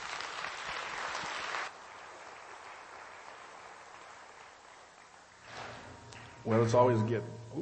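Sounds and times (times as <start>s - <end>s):
audience applause welcoming a speaker: 0.0s - 5.4s
speech: 6.4s - 7.6s.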